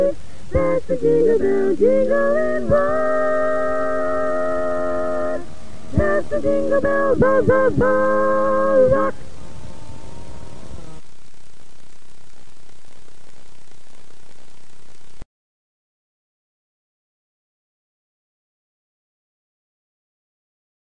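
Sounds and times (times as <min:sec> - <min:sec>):
tenor singing: 0:00.0 - 0:11.0.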